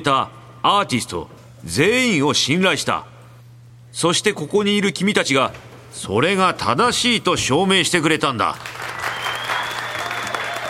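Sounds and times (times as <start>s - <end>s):
speech: 0.0s - 3.1s, 3.9s - 8.9s
faint steady hum: 0.0s - 10.6s
employees applauding: 8.6s - 10.6s
employees cheering and whooping: 9.0s - 10.6s.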